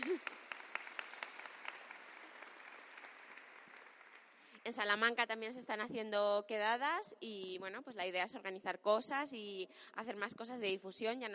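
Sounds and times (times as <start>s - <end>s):
audience applause: 0.0s - 4.5s
speech: 4.7s - 11.3s.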